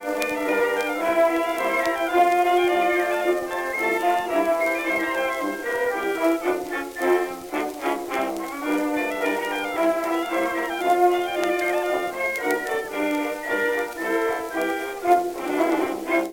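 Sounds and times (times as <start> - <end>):
jukebox blues music: 0.0 - 16.3.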